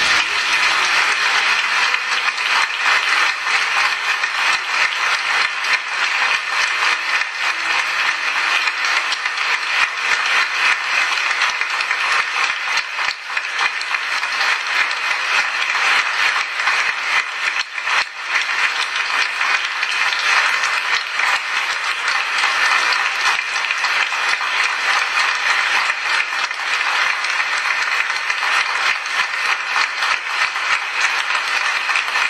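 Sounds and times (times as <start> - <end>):
large audience applause: 0.0 - 32.2.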